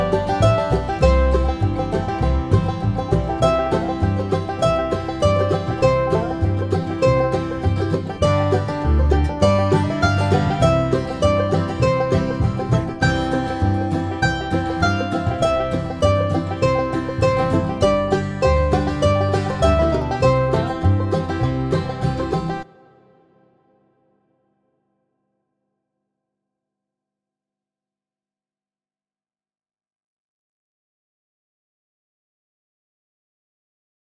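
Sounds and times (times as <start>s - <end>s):
mandolin: 0.0s - 23.4s.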